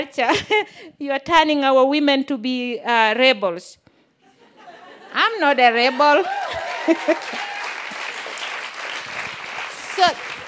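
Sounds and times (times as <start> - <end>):
speech: 0.0 - 3.8, 5.1 - 7.5, 10.0 - 10.3
laughter: 4.3 - 7.6
audience clapping: 5.9 - 10.4.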